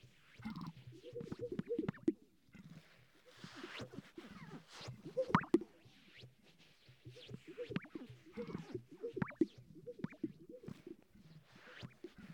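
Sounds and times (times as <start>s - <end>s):
sage-grouse display popping and bubbling: 0.5s - 2.2s, 5.0s - 5.7s, 7.1s - 12.3s.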